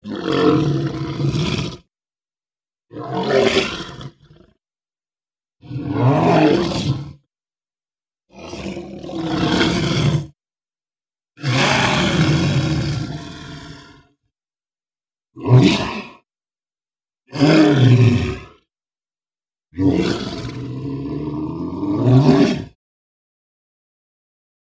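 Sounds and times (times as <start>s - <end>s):
monster roars: 0.0s - 1.9s, 2.9s - 4.4s, 5.6s - 7.2s, 8.3s - 10.4s, 11.4s - 14.1s, 15.4s - 16.2s, 17.3s - 18.6s, 19.8s - 22.8s.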